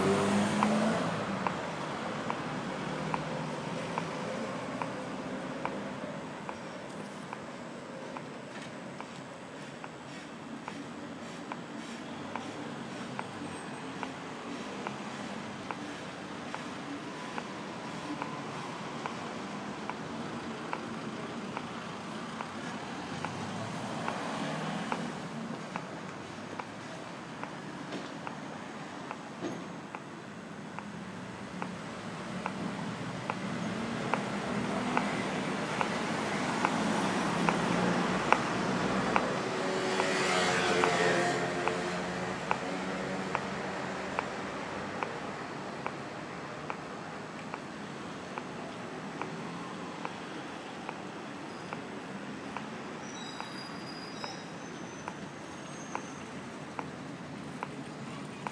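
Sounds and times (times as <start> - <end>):
pedestrian crossing clicks in Berlin: 0.0 - 58.4.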